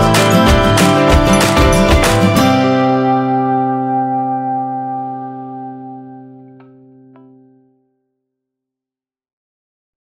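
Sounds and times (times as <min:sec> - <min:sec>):
optimistic upbeat acoustic music at 95bpm: 0:00.0 - 0:07.0.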